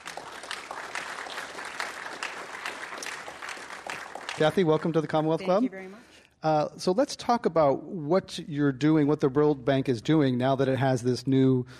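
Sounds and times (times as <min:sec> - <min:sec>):
audience applause welcoming panel speakers at a Commonwealth Club event: 0:00.0 - 0:05.3
speech: 0:04.4 - 0:11.7.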